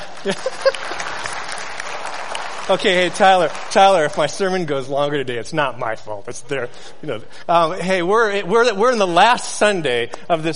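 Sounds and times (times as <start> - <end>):
laughter: 0.0 - 1.6
audience applause: 0.0 - 4.7
speech: 0.2 - 1.1, 2.7 - 10.5.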